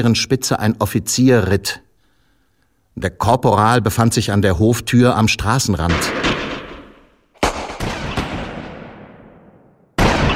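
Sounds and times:
speech: 0:00.0 - 0:01.8, 0:03.0 - 0:06.5
gunshots fired: 0:05.9 - 0:10.3.

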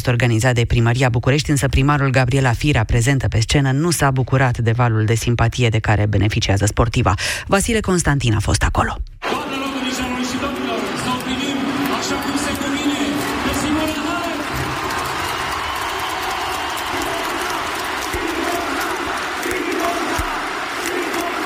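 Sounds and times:
speech: 0:00.0 - 0:09.7
stadium crowd of thousands cheering: 0:09.2 - 0:21.4.

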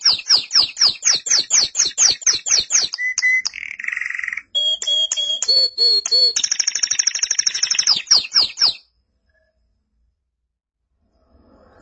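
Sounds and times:
canary singing: 0:00.0 - 0:08.8.

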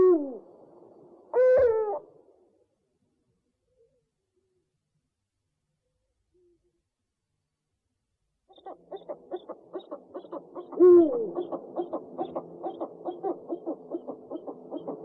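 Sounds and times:
owl giving a two-part hoot: 0:00.0 - 0:00.5, 0:01.3 - 0:02.1, 0:08.5 - 0:15.0.

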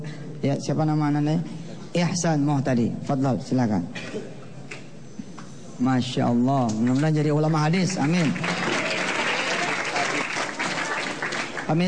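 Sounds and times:
speech: 0:00.4 - 0:04.4, 0:05.8 - 0:08.6
crowd applause in a mosque: 0:07.9 - 0:11.8.

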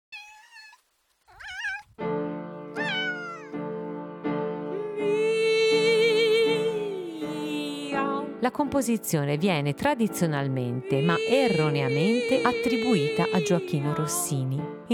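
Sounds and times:
steady rhythmic piano chords: 0:02.0 - 0:14.9
two female sopranos singing a comic meowing duet: 0:02.8 - 0:03.6, 0:04.7 - 0:08.4, 0:10.6 - 0:14.7
speech: 0:08.4 - 0:14.9.

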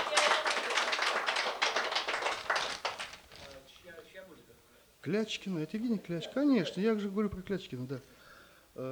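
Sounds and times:
audience applause at a bard song concert: 0:00.0 - 0:03.4
speech: 0:05.0 - 0:08.2, 0:08.8 - 0:08.9.

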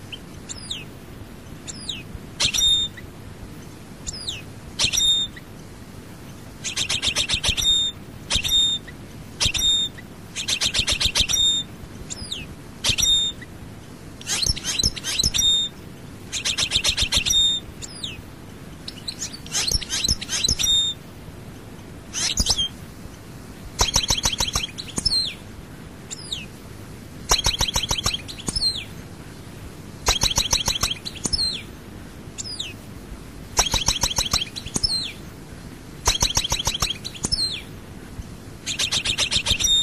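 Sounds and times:
European goldfinch twittering song: 0:00.1 - 0:00.9, 0:01.6 - 0:03.0, 0:04.0 - 0:05.4, 0:06.6 - 0:13.5, 0:14.2 - 0:18.2, 0:18.8 - 0:21.0, 0:22.1 - 0:22.7, 0:23.8 - 0:25.4, 0:26.1 - 0:26.5, 0:27.3 - 0:28.9, 0:30.0 - 0:31.7, 0:32.4 - 0:32.8, 0:33.6 - 0:35.2, 0:36.0 - 0:37.7, 0:38.7 - 0:39.8.

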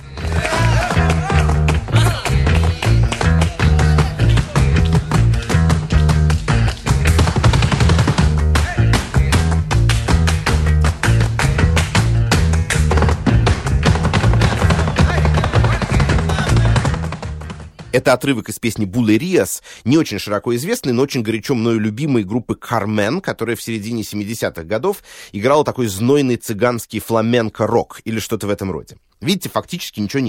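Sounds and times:
flamenco dance heel strikes on floor: 0:00.1 - 0:18.0
speech: 0:18.0 - 0:30.2.

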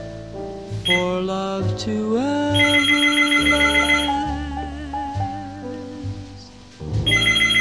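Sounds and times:
melodic electronic phone ringtone for an incoming call: 0:00.9 - 0:01.1, 0:02.5 - 0:04.4, 0:07.1 - 0:07.5
speech: 0:00.9 - 0:03.8.

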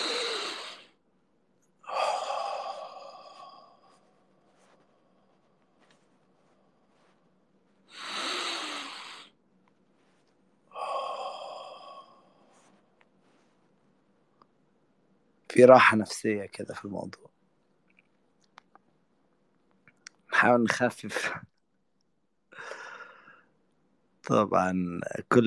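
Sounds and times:
deep breathing during an inhale-and-exhale exercise: 0:00.0 - 0:01.0, 0:01.8 - 0:13.6, 0:22.5 - 0:23.6
speech: 0:15.6 - 0:17.3, 0:20.4 - 0:21.5, 0:24.3 - 0:25.4.

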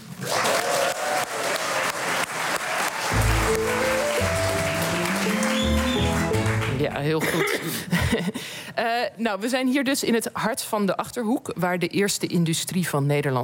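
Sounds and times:
studio audience applause: 0:00.0 - 0:07.2
speech: 0:07.0 - 0:13.4.

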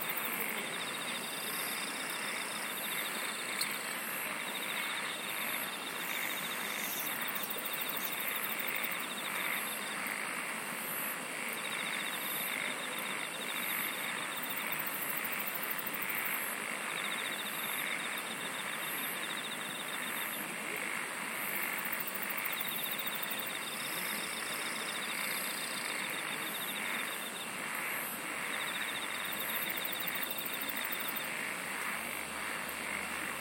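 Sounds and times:
insect chorus buzzing: 0:00.0 - 0:33.3.

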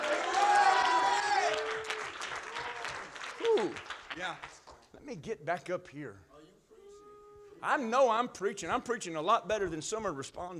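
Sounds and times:
people shouting at a sermon: 0:00.0 - 0:02.0
audience at a sermon clapping: 0:00.0 - 0:05.0
speech: 0:03.6 - 0:06.3, 0:07.6 - 0:10.5.

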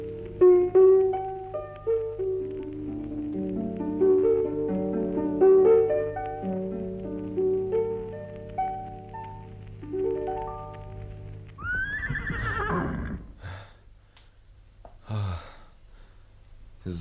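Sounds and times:
short musical phrase: 0:00.0 - 0:13.3
horse neighing: 0:11.6 - 0:13.4.

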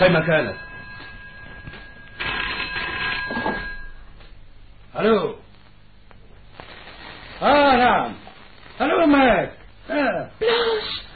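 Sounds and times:
speech: 0:00.0 - 0:00.7, 0:05.0 - 0:05.4, 0:07.4 - 0:08.2, 0:08.8 - 0:11.0
telephone ringing: 0:00.0 - 0:04.1.

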